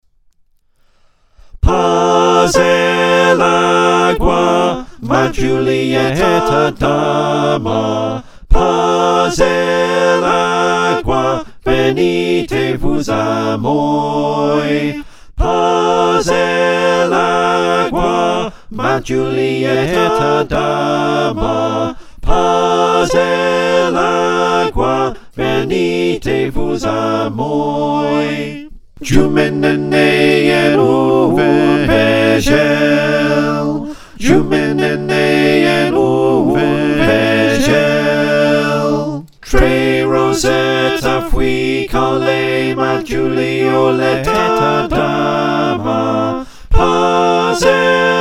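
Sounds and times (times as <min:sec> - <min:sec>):
soprano alto tenor bass choir singing: 0:01.6 - 0:48.2.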